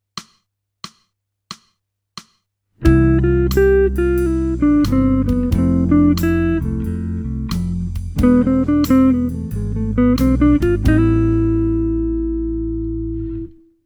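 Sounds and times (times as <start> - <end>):
jazz music: 2.9 - 13.4.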